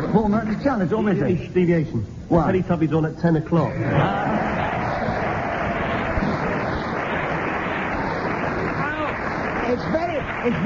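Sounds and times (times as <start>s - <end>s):
speech: 0.2s - 4.6s, 9.7s - 10.6s
studio audience applause: 3.9s - 10.6s.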